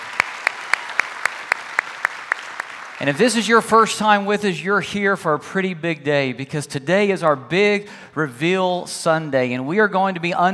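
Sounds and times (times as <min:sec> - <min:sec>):
church audience applauding: 0:00.0 - 0:03.3
speech: 0:03.0 - 0:10.5.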